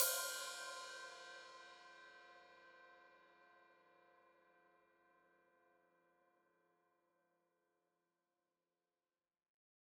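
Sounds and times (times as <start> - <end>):
open hi-hat: 0.0 - 1.4.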